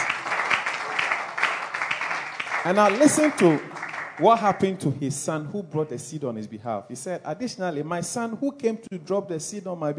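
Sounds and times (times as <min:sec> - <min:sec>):
crowd clapping: 0:00.0 - 0:04.8
speech: 0:02.6 - 0:09.9.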